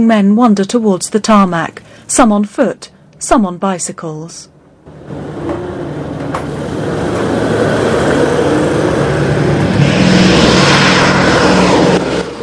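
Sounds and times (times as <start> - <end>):
speech: 0.0 - 5.6
B-17 bomber planes coming in to land: 4.8 - 12.4.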